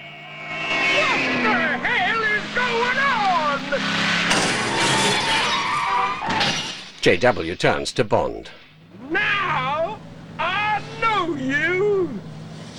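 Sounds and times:
car engine making a U-turn on the street: 0:00.0 - 0:12.7
car smashing through a showroom shop window: 0:04.3 - 0:07.4
speech: 0:07.0 - 0:08.6.

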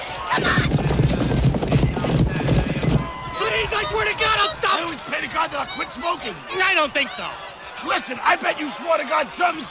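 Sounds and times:
horses galloping in a horse race: 0:00.2 - 0:05.7
speech: 0:05.4 - 0:09.6.

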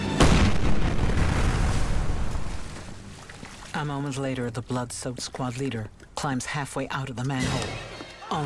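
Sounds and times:
grenade exploding after being thrown down a manhole: 0:00.2 - 0:03.0
speech: 0:03.8 - 0:08.4.

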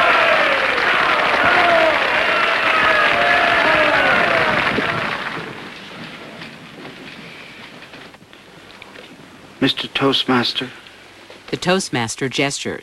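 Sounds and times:
banquet audience standing ovation for Thomas Edison: 0:00.0 - 0:06.0
speech: 0:09.6 - 0:10.8, 0:11.5 - 0:12.8.

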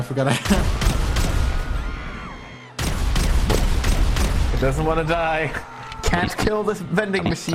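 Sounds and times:
speech: 0:00.0 - 0:01.0, 0:04.6 - 0:07.5
pistol gunfire in a video game: 0:00.5 - 0:01.7, 0:02.8 - 0:05.0.

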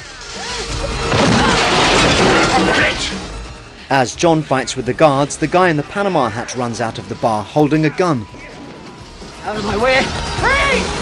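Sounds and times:
phone booth crashing with glass shattering: 0:00.5 - 0:03.6
speech: 0:03.9 - 0:08.5, 0:09.4 - 0:11.0.

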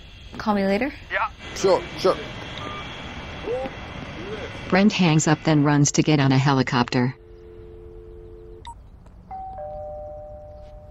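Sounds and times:
low rumbling background: 0:00.0 - 0:10.8
speech: 0:00.4 - 0:02.4, 0:03.5 - 0:07.2
electronic doorbell chiming: 0:09.3 - 0:10.8.

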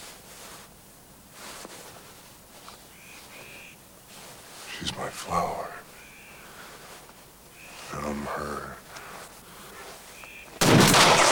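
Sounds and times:
speech: 0:04.8 - 0:05.8
gunshot striking rock: 0:10.6 - 0:11.2.

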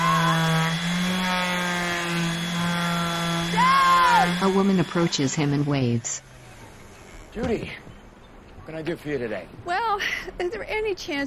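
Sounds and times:
sanding a wood plank on a boat: 0:00.0 - 0:07.3
speech: 0:04.4 - 0:06.4, 0:07.4 - 0:07.9, 0:08.7 - 0:11.2.

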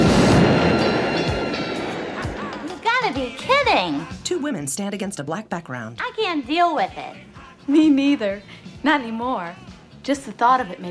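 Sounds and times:
explosion sound effect: 0:00.0 - 0:02.9
speech: 0:03.2 - 0:10.8.

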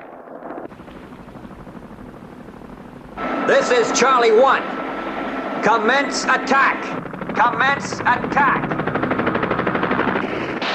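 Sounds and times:
fleet of helicopters approaching an offshore platform across the water: 0:00.4 - 0:10.7
speech: 0:03.5 - 0:04.8, 0:05.6 - 0:08.8.

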